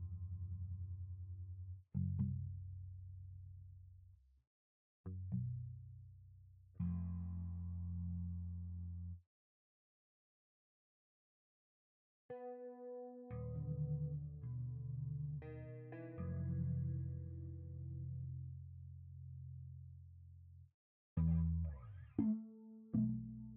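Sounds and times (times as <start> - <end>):
electric bass: 0.0 - 4.3, 5.1 - 9.2, 13.3 - 20.5, 21.2 - 23.5.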